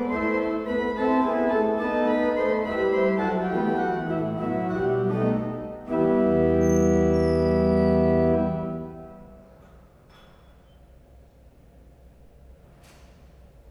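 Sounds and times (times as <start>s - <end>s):
organ playing a gigue in E minor: 0.0s - 9.0s.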